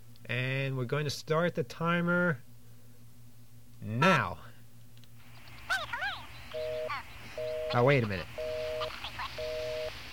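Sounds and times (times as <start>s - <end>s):
speech: 0.3s - 2.5s, 3.8s - 4.5s, 7.7s - 8.4s
high squeaky sped-up voice chattering: 5.6s - 7.1s, 8.0s - 9.4s
telephone busy signal: 6.5s - 9.9s.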